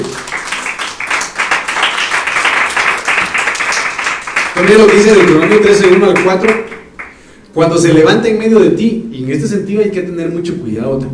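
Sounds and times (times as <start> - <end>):
speech: 0.0 - 0.2, 4.6 - 6.8, 7.6 - 11.1
audience clapping hands: 0.0 - 7.3.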